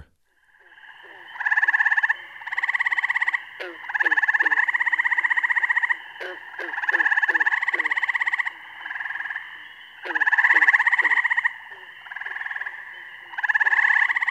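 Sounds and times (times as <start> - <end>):
treefrog calls: 0.3 - 14.2.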